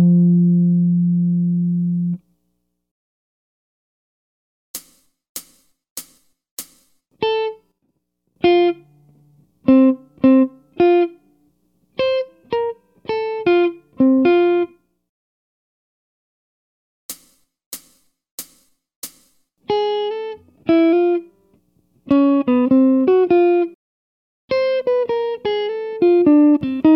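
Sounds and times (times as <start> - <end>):
jazz guitar: 0.0 - 2.2, 8.4 - 11.2, 12.0 - 14.8, 19.7 - 21.4, 22.0 - 23.8, 24.5 - 26.9.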